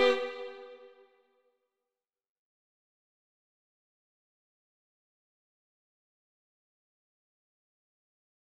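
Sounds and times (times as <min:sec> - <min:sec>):
violin: 0:00.0 - 0:01.1.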